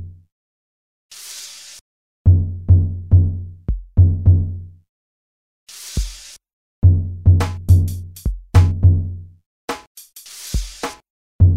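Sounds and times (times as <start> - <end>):
drum: 2.3 - 4.5, 5.9 - 9.1, 9.7 - 11.5.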